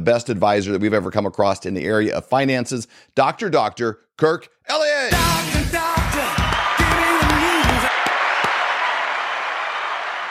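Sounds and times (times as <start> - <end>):
speech: 0.0 - 5.2
studio audience applauding: 6.0 - 10.3.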